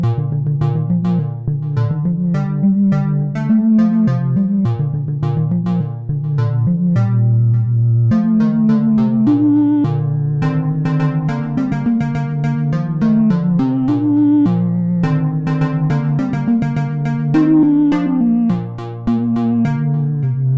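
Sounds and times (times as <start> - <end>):
trance cover: 0.0 - 20.5.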